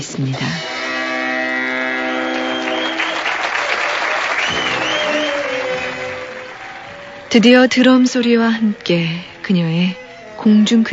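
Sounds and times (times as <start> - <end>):
speech: 0.0 - 0.7, 7.3 - 10.9
audience applause: 1.9 - 8.3.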